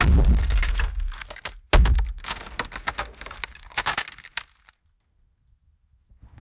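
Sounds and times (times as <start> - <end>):
huge wooden gates closing: 0.0 - 4.7.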